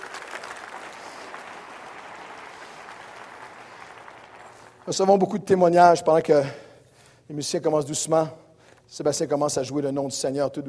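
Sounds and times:
audience applauding: 0.0 - 4.9
speech: 4.8 - 6.6, 7.3 - 10.6.

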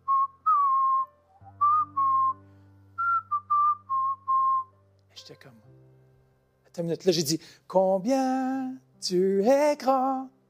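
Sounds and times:
person whistling imitation of a bird's song: 0.0 - 2.4, 3.0 - 4.8
speech: 6.8 - 10.4.

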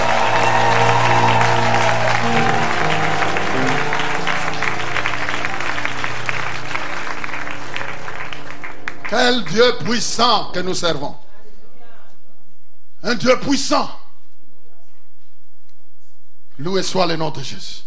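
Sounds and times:
worship congregation clapping: 0.0 - 10.3
speech: 9.3 - 11.2, 13.0 - 14.0, 16.6 - 17.8.

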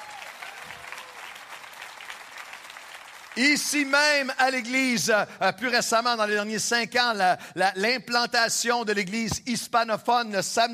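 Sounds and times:
crowd clapping: 0.0 - 4.6
speech: 3.4 - 10.7.

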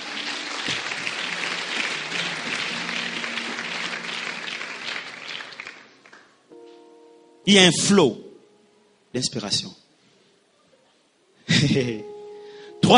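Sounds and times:
church congregation applauding during a sermon: 0.0 - 6.5
speech: 7.4 - 8.2, 9.2 - 9.8, 11.6 - 12.2.

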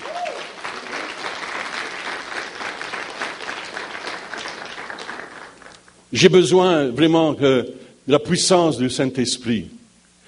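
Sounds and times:
audience applause: 0.0 - 5.9
speech: 6.1 - 9.8.

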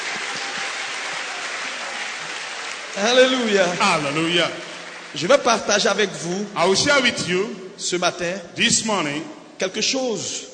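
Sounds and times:
congregation applauding during a French and English church service: 0.0 - 7.2
speech: 3.0 - 10.5.

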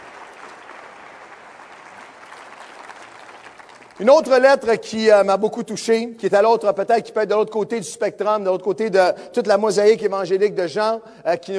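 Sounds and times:
audience clapping and cheering: 0.0 - 4.5
speech: 4.0 - 11.5.

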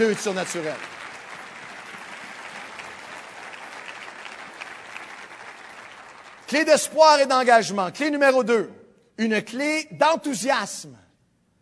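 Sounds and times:
speech: 0.0 - 1.0, 6.5 - 11.0
audience applause: 0.0 - 6.7.

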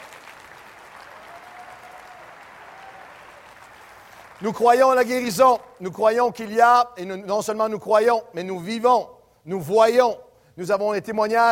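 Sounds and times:
audience applauding: 0.0 - 5.0
speech: 4.4 - 11.5.

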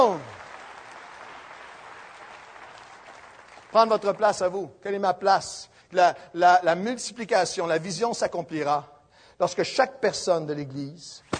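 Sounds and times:
church congregation clapping during a morning service: 0.0 - 5.1
speech: 3.7 - 11.3.

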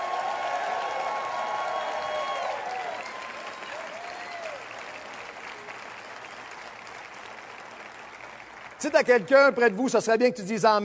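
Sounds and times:
cheers and whoops: 0.0 - 6.6
audience applause: 0.0 - 10.2
speech: 8.8 - 10.8.

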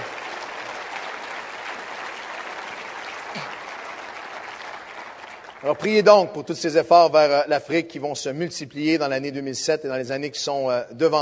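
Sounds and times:
audience applauding: 0.0 - 6.6
speech: 5.6 - 11.2.

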